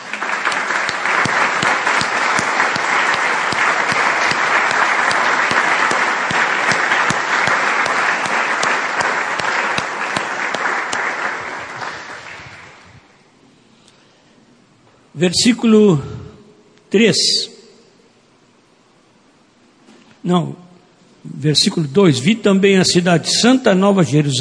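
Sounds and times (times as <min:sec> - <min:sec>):
audience applause: 0:00.0 - 0:13.0
speech: 0:15.2 - 0:16.2, 0:16.9 - 0:17.5, 0:20.3 - 0:20.6, 0:21.4 - 0:24.4.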